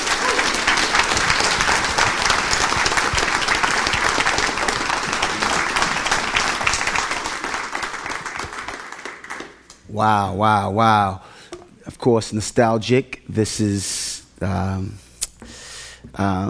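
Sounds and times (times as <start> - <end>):
audience applause welcoming a guest speaker: 0.0 - 9.6
speech: 10.0 - 11.3, 12.0 - 15.0, 16.2 - 16.4.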